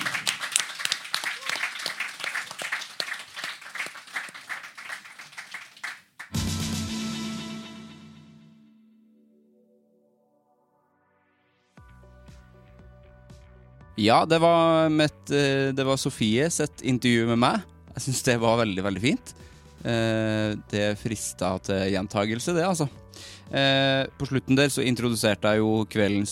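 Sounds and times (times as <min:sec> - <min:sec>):
audience clapping: 0:00.0 - 0:06.5
speech: 0:14.0 - 0:26.3.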